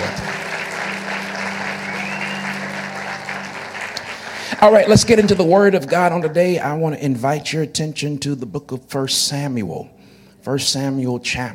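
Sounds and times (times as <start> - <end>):
audience applause: 0.0 - 6.6
speech: 4.6 - 11.5.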